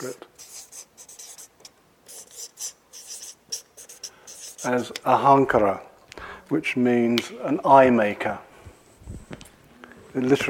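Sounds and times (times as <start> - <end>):
speech: 0.0 - 0.5, 4.6 - 5.9, 6.5 - 8.5, 10.2 - 10.4
writing on a board: 0.0 - 1.5, 2.1 - 5.0.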